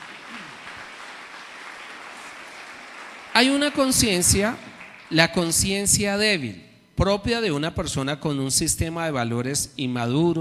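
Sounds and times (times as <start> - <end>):
audience applause: 0.0 - 5.6
speech: 3.4 - 10.4.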